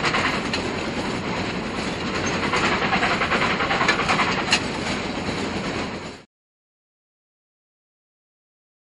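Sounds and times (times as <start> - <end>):
train starting: 0.0 - 6.3.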